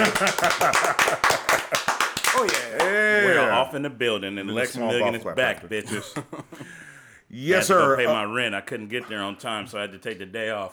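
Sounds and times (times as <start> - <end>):
group clapping hands: 0.0 - 3.7
laughter: 0.0 - 3.8, 4.7 - 8.3
speech: 0.1 - 1.7, 2.3 - 10.7.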